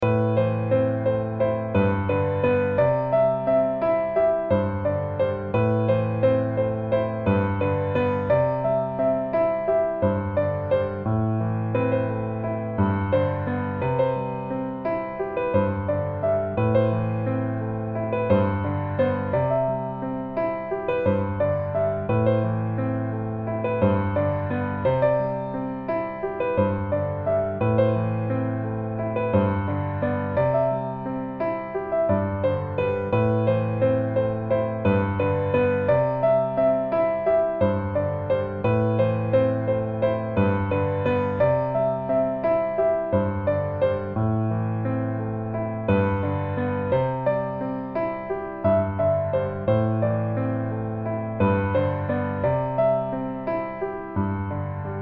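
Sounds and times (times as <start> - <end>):
piano: 0.0 - 55.0.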